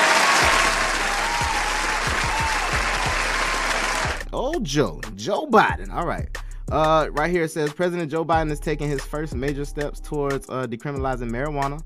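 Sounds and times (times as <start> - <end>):
hand clapping: 0.0 - 4.2
speech: 4.5 - 11.8.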